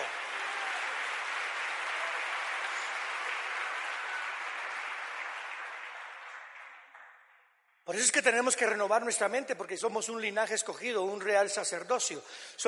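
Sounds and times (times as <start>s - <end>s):
loud audience applause: 0.0s - 7.4s
speech: 7.9s - 12.6s.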